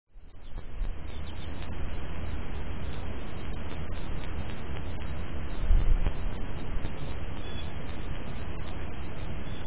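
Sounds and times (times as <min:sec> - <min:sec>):
crickets chirping: 0:00.1 - 0:09.6.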